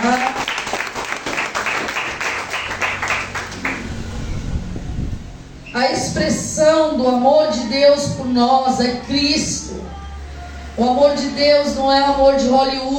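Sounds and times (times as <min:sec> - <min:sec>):
audience applauding: 0:00.0 - 0:04.1
low murmuring rumble: 0:02.2 - 0:12.9
speech: 0:05.8 - 0:09.6, 0:10.8 - 0:12.9.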